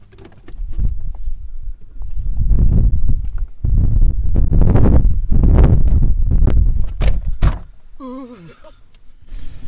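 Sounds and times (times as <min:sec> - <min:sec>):
strong storm wind: 0:00.6 - 0:07.5.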